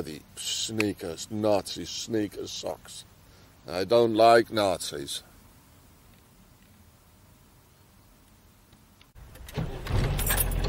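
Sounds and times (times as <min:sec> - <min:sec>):
speech: 0:00.0 - 0:05.3
camper van engine running: 0:09.2 - 0:10.6.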